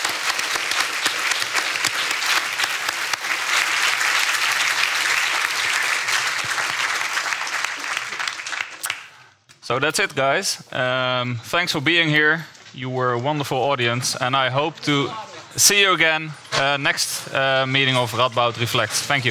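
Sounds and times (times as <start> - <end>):
audience applause thanking a speaker at the end of an evening talk: 0.0 - 9.2
speech: 9.7 - 19.3.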